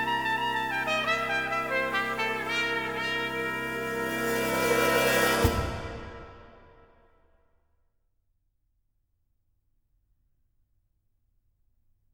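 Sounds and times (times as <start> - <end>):
keyboard prelude and fugue: 0.0 - 6.1.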